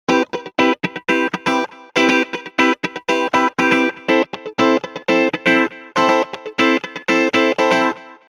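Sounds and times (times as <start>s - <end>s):
funk music: 0.1s - 8.1s.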